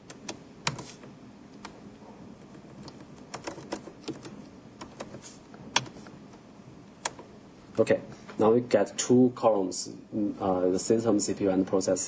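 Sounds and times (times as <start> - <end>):
typing on a computer keyboard: 2.8 - 5.2
speech: 7.8 - 12.0.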